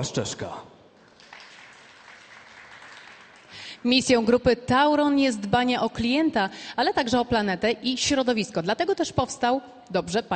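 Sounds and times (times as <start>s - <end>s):
speech: 0.0s - 0.7s, 3.8s - 10.3s
audience applause at a Polish energy group's corporate event: 1.0s - 3.8s.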